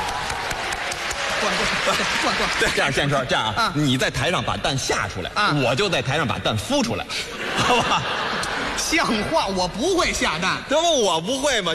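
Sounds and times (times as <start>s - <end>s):
audience applause: 0.0s - 3.0s
speech: 1.4s - 11.7s
laughter: 7.1s - 10.0s.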